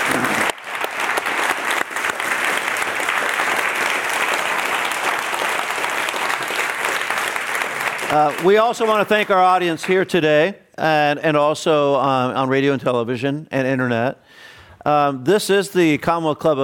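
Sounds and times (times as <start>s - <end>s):
audience applause at a Commonwealth Club of San Francisco event: 0.0s - 10.0s
speech: 8.1s - 16.6s.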